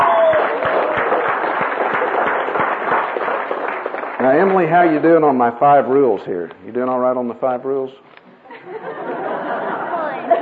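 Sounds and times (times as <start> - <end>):
audience applause: 0.0 - 5.0
speech: 4.2 - 8.2
laughter: 8.5 - 10.4.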